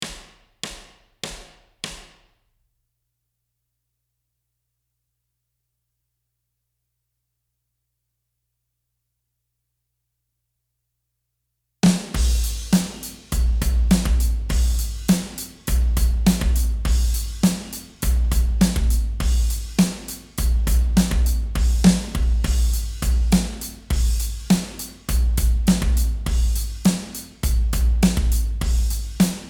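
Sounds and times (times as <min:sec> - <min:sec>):
drums: 0:00.0 - 0:02.3, 0:11.8 - 0:29.4.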